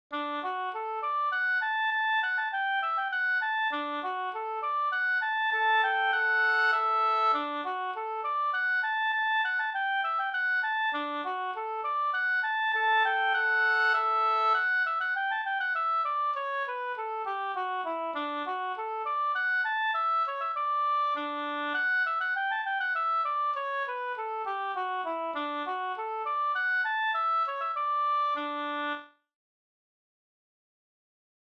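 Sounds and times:
slängpolska folk dance tune: 0.1s - 28.9s.

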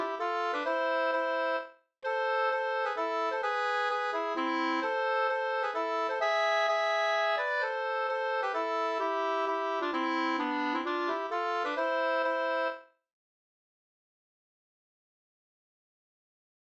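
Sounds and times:
hambo polska folk dance tune: 0.0s - 12.8s.

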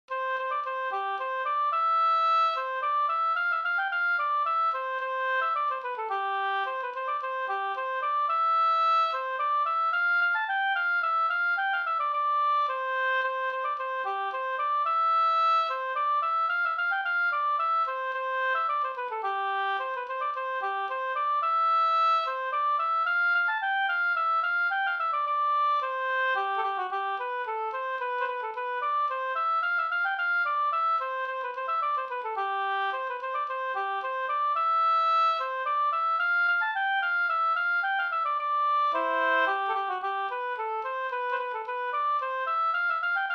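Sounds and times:
slangpolska folk dance tune: 0.1s - 43.3s.

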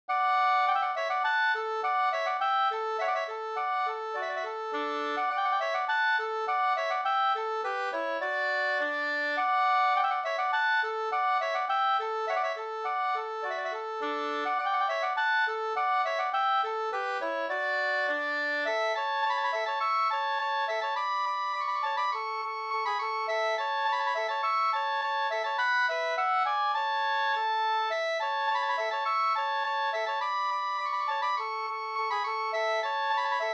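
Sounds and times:
polka music: 0.1s - 33.5s.

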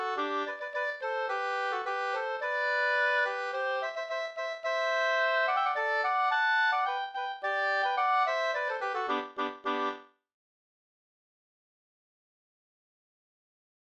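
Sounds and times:
polka music: 0.0s - 10.0s.

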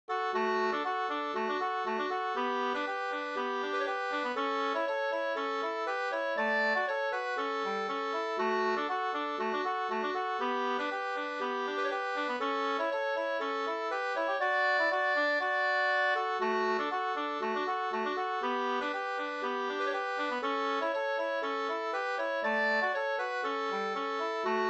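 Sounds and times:
polka music: 0.1s - 24.6s.

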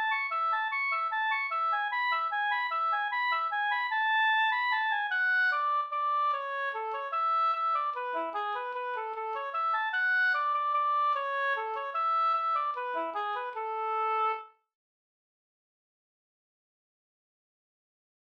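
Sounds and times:
waltz music: 0.0s - 14.4s.

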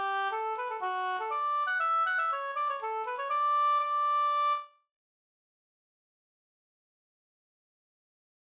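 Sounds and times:
polska folk dance tune: 0.0s - 4.7s.

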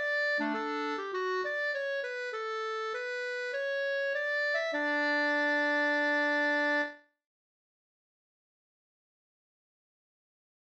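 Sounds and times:
polka music: 0.0s - 6.9s.

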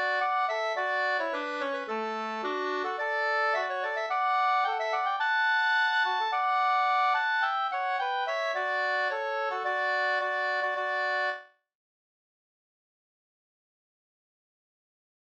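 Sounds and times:
wedding march music: 0.0s - 11.4s.

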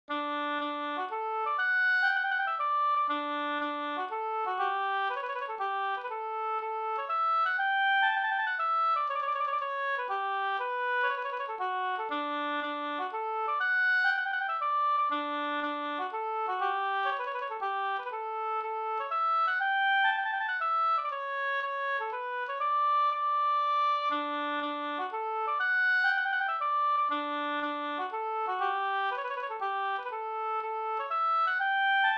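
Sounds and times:
polska folk dance tune in D major: 0.2s - 32.1s.

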